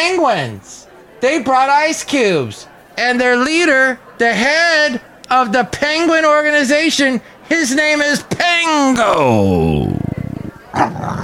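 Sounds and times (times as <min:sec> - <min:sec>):
speech: 0:00.0 - 0:10.0
boxer dog growling and barking: 0:09.6 - 0:11.2.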